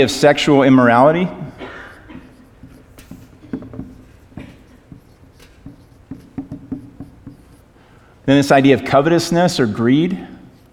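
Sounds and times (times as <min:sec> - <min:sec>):
speech: 0:00.0 - 0:01.4, 0:08.3 - 0:10.3
pen scratching on paper: 0:00.0 - 0:07.8, 0:10.5 - 0:10.7.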